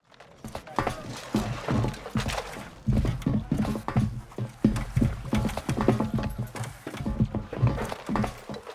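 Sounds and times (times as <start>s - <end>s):
Mi-8MTV2 helicopter with troops loading: 0.0s - 8.7s.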